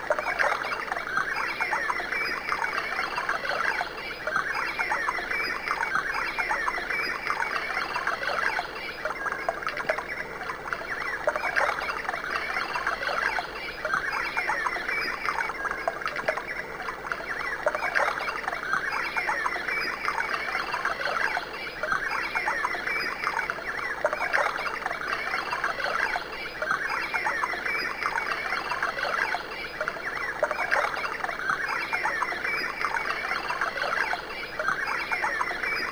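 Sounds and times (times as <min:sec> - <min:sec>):
birds as tinnitus masker: 0:00.0 - 0:35.9.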